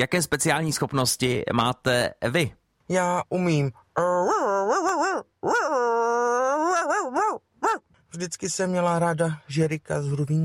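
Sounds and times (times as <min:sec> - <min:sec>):
speech: 0:00.0 - 0:10.4
person imitating a barking dog: 0:04.0 - 0:07.8.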